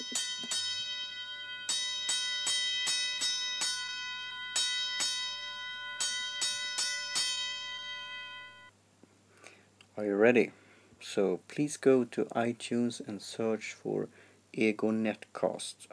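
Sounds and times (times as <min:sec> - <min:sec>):
fire alarm bell ringing: 0:00.0 - 0:08.7
speech: 0:10.0 - 0:15.9.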